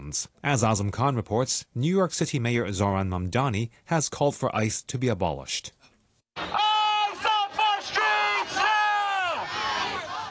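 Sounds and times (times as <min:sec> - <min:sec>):
speech: 0:00.1 - 0:05.8
protest crowd chanting: 0:06.4 - 0:10.2.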